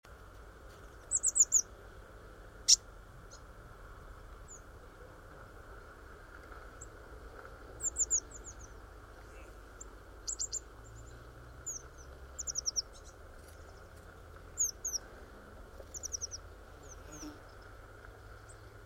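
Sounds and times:
low steady hum: 0.0s - 18.8s
Eurasian blue tit calls: 0.9s - 1.7s, 7.8s - 9.6s, 10.2s - 14.0s, 14.6s - 15.0s, 15.8s - 17.6s.

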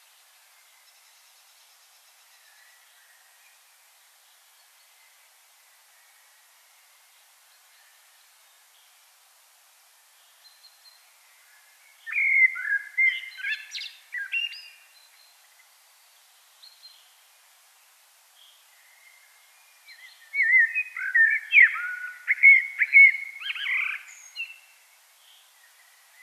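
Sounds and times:
common blackbird singing: 12.0s - 15.6s, 18.4s - 26.2s.

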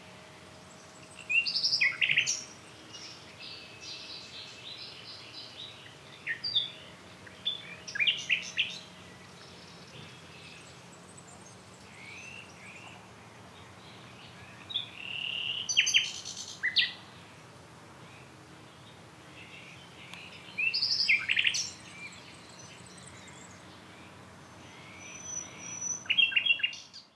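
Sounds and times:
steady low hiss: 0.0s - 27.0s
Common nightingale song of rapid chirps and trills: 0.7s - 9.7s, 13.9s - 17.0s, 19.4s - 23.8s, 24.6s - 27.1s.

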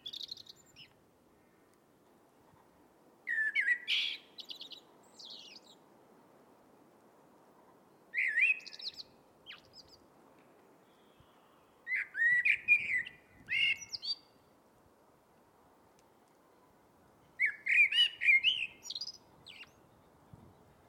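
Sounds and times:
Eurasian blackbird song: 0.0s - 1.6s, 3.3s - 5.9s, 8.0s - 10.1s, 10.8s - 14.5s, 17.2s - 20.8s
faint steady hiss: 0.0s - 20.8s.

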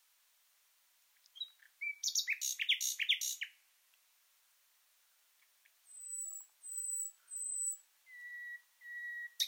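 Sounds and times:
common nightingale singing: 1.3s - 3.6s, 5.9s - 9.4s.

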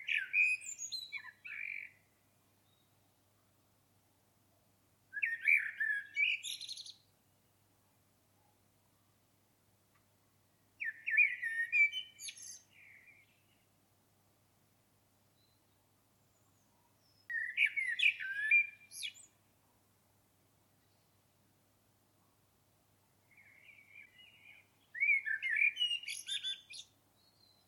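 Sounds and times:
common blackbird singing: 0.0s - 2.0s, 5.1s - 7.1s, 10.8s - 13.6s, 16.3s - 19.4s, 23.3s - 27.6s.

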